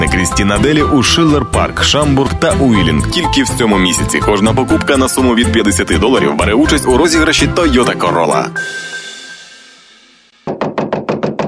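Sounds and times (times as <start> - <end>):
speech: 0.1 - 8.9
loud knocking: 10.4 - 11.4.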